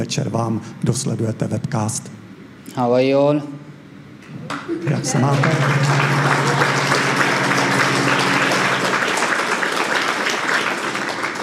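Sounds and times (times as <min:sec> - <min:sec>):
speech: 0:00.1 - 0:03.6, 0:04.4 - 0:06.8
audience applause: 0:04.5 - 0:11.4.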